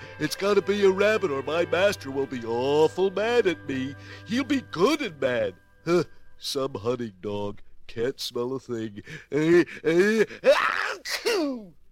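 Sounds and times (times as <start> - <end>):
speech: 0.2 - 11.8
theatrical sneeze performed by a voice: 10.0 - 11.7.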